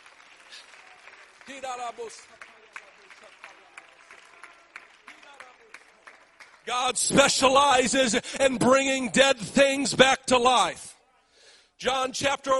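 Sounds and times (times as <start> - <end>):
audience clapping: 0.0 - 7.9
speech: 1.5 - 2.5, 6.7 - 10.9, 11.8 - 12.5.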